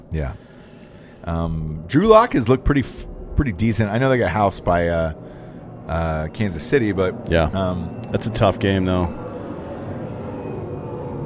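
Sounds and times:
speech: 0.1 - 0.5, 1.2 - 9.2
airplane flying low overhead: 0.4 - 11.2.

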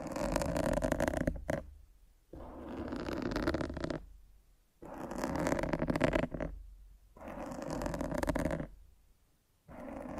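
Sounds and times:
scratching against a microphone: 0.0 - 1.7, 2.3 - 4.0, 4.8 - 6.6, 7.2 - 8.8, 9.7 - 10.1.

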